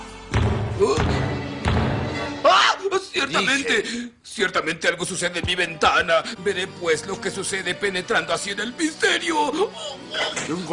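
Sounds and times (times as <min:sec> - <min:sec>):
loud heavy knocking: 0:00.4 - 0:02.4
speech: 0:03.2 - 0:10.7.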